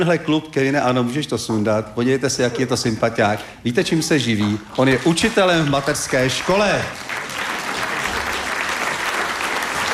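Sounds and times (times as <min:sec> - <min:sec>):
speech: 0:00.0 - 0:07.1
large audience applause in a reverberant hall: 0:04.8 - 0:09.9.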